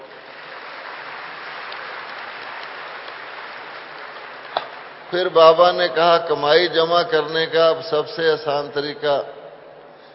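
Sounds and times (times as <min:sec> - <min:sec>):
audience clapping: 0:00.0 - 0:06.1
speech: 0:05.1 - 0:09.4.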